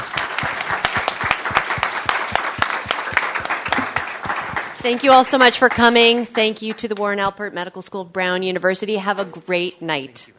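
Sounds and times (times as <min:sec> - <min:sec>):
audience applause: 0:00.0 - 0:06.3
speech: 0:04.8 - 0:10.3.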